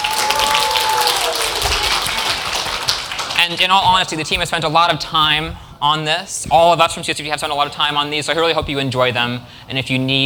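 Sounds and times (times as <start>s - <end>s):
audience applause: 0.0s - 3.6s
speech: 3.5s - 10.2s.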